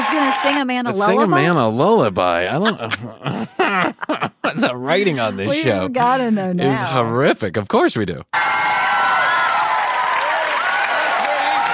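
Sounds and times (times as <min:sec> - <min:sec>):
studio audience applause: 0:00.0 - 0:01.4, 0:08.4 - 0:11.7
speech: 0:00.4 - 0:08.6
laughter: 0:01.0 - 0:05.8.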